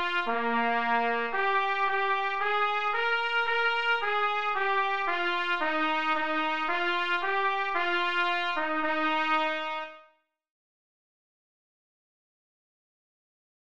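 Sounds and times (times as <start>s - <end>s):
trumpet: 0.0s - 10.2s.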